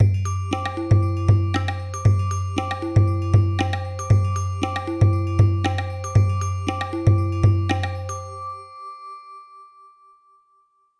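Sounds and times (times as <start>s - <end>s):
Alesis SamplePad Pro electronic drum pad: 0.0s - 8.1s.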